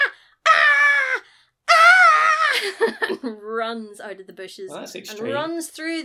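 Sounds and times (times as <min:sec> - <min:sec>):
person imitating a terrified kid's scream: 0:00.0 - 0:02.6
speech: 0:03.0 - 0:06.0.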